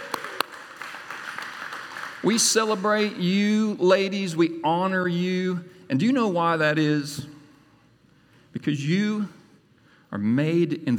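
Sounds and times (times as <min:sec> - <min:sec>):
round of applause: 0:00.0 - 0:03.1
speech: 0:02.2 - 0:07.3, 0:08.5 - 0:09.4, 0:10.1 - 0:10.9.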